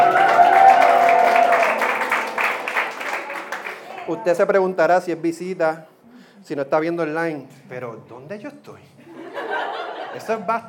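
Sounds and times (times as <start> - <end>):
crowd applauding: 0.0 - 4.2
speech: 4.2 - 10.6
laughter: 9.0 - 10.6.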